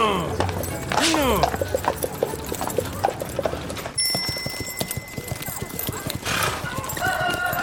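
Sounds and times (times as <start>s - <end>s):
horse hooves clip-clopping: 0.2s - 7.6s.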